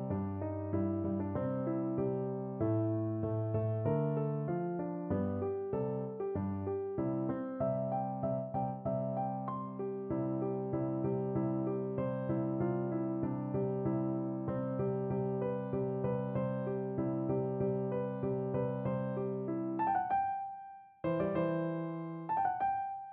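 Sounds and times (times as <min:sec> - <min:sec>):
piano piece: 0:00.0 - 0:23.1.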